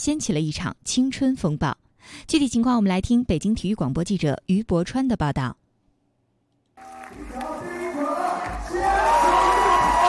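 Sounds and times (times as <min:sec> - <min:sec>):
speech: 0:00.0 - 0:05.6
crowd cheering and roaring at a 3x3 basketball game: 0:06.8 - 0:10.0.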